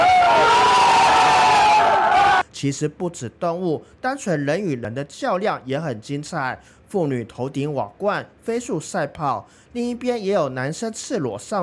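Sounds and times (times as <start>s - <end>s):
crowd cheering at horse race finish: 0.0s - 2.4s
speech: 2.6s - 11.6s.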